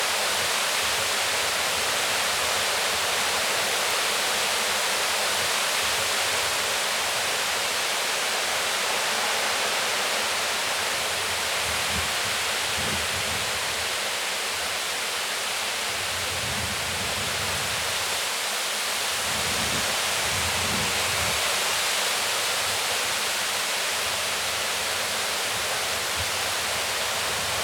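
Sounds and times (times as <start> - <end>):
trees in the wind at Whalley Lake: 0.0 - 27.6.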